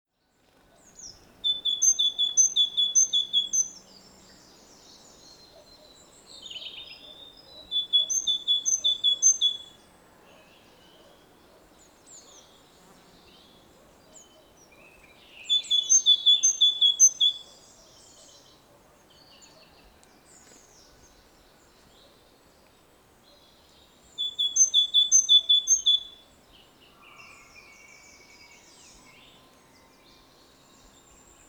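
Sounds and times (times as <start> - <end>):
great tit calling: 1.0 - 3.8, 7.6 - 9.7, 15.4 - 17.6, 24.2 - 26.2.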